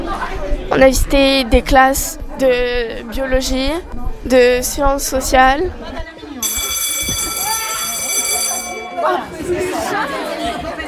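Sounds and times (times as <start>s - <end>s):
speech: 0.8s - 6.0s, 9.0s - 10.7s
school bell ringing: 6.4s - 10.1s.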